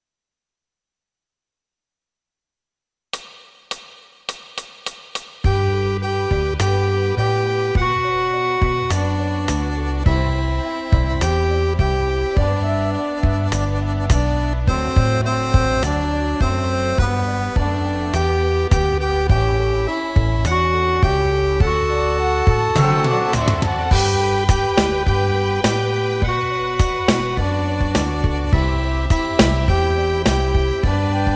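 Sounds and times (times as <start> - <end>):
accordion playing tutti: 5.4 - 31.3.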